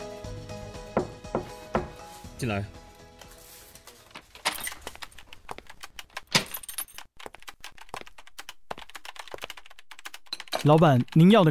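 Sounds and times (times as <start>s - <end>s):
knocking on a wooden door: 0.9s - 2.0s
speech: 2.4s - 2.8s, 10.6s - 11.5s.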